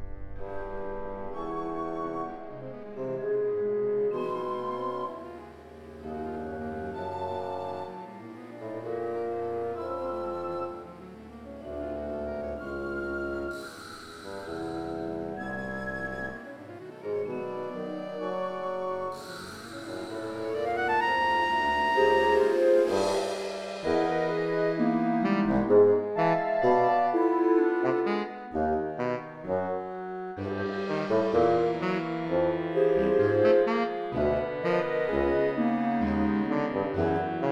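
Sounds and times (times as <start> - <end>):
saxophone band playing: 3.0 - 37.5.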